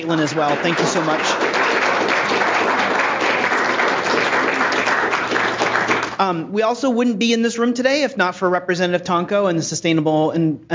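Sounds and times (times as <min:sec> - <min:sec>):
speech: 0:00.0 - 0:01.5, 0:06.2 - 0:10.7
audience applause: 0:00.0 - 0:06.2.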